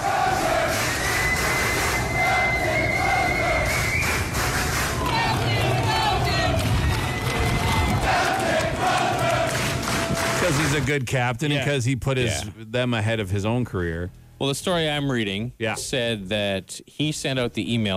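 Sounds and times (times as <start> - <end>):
large crowd of sailors cheering and shouting: 0.0 - 10.8
speech: 10.8 - 17.9.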